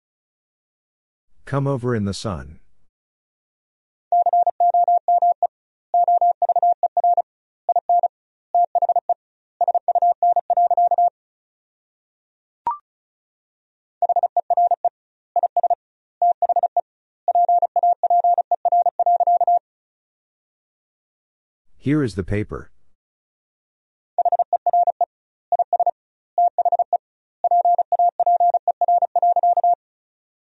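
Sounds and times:
speech: 0:01.5 - 0:02.6, 0:21.8 - 0:22.7
rapid Morse code tones at 35 wpm: 0:04.1 - 0:11.1, 0:14.0 - 0:19.6, 0:24.2 - 0:29.8.

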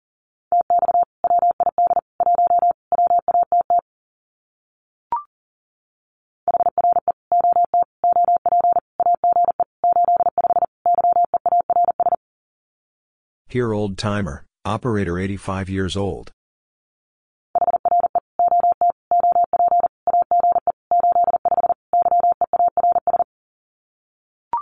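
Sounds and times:
fast Morse code tone at 40 words per minute: 0:00.6 - 0:03.8, 0:06.5 - 0:12.2, 0:17.6 - 0:23.3
speech: 0:13.5 - 0:16.4.

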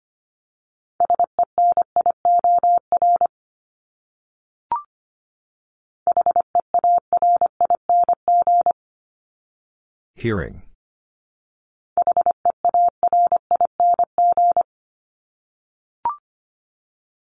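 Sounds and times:
Morse code beeps: 0:01.0 - 0:03.3, 0:06.1 - 0:08.8, 0:12.0 - 0:14.7
speech: 0:10.2 - 0:10.7.

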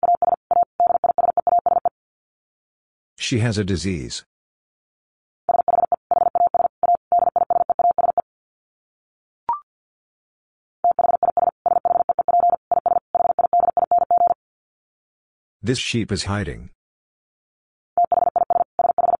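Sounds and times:
Morse code tones at 50 words per minute: 0:00.0 - 0:01.9, 0:05.5 - 0:08.2, 0:10.9 - 0:14.4, 0:18.0 - 0:19.1
speech: 0:03.3 - 0:04.3, 0:15.7 - 0:16.8.

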